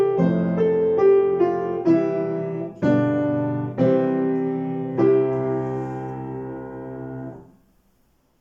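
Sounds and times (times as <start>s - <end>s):
piano: 0.0s - 8.4s.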